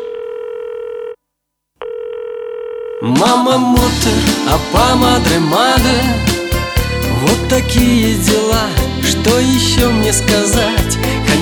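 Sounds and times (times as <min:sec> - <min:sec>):
telephone dial tone while calling home: 0:00.0 - 0:01.2, 0:01.8 - 0:03.1
speech: 0:03.0 - 0:06.4, 0:07.2 - 0:11.2.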